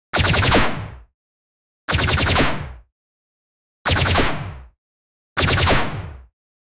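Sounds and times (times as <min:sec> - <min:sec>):
high energy combat sound: 0:00.2 - 0:00.6, 0:03.9 - 0:04.3, 0:05.4 - 0:05.8.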